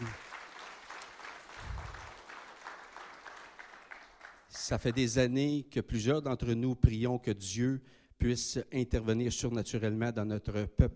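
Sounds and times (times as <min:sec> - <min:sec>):
audience applause: 0:00.0 - 0:04.6
speech: 0:04.6 - 0:10.9.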